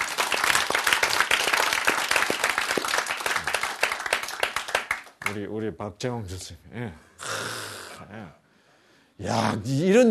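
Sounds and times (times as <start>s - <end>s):
audience applause: 0.0s - 5.4s
speech: 5.3s - 7.1s, 8.0s - 8.4s, 9.2s - 10.0s.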